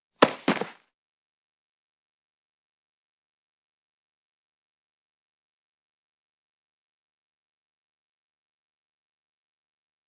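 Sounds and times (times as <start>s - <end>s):
fight sounds: 0.2s - 0.8s.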